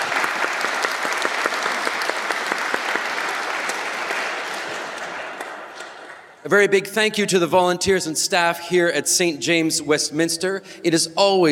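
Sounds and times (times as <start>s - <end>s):
crowd clapping: 0.0s - 6.4s
speech: 6.5s - 11.5s.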